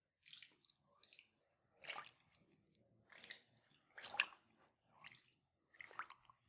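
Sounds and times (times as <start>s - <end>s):
water: 0.0s - 6.4s.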